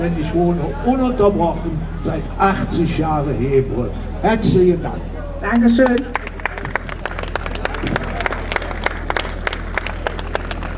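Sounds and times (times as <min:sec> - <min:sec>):
speech: 0:00.0 - 0:06.2
audience applause after a talk: 0:05.8 - 0:10.7.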